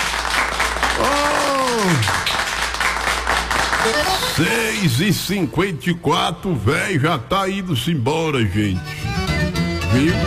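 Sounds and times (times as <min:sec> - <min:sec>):
crowd applause for birthday people: 0:00.0 - 0:04.9
person cheering: 0:00.9 - 0:02.2
speech: 0:03.8 - 0:09.0, 0:09.9 - 0:10.2.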